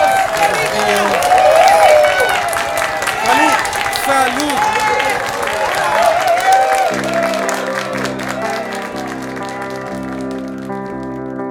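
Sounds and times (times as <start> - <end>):
applause: 0.0 - 11.4.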